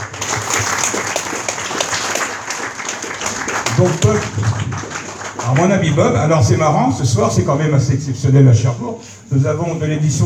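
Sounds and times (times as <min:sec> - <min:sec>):
audience applause: 0:00.0 - 0:06.2
speech: 0:03.8 - 0:04.8, 0:05.5 - 0:10.2.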